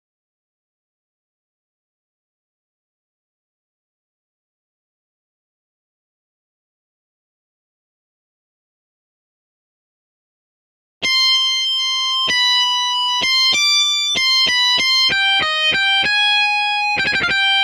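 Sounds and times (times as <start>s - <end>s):
guitar solo in C major: 11.0s - 17.6s.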